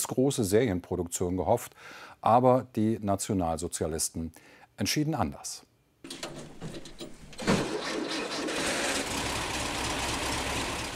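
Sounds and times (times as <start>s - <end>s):
speech: 0.0s - 6.2s
engine of a one-off 1930s prototype car built by Eugen Friedrich Meyer: 8.4s - 10.9s.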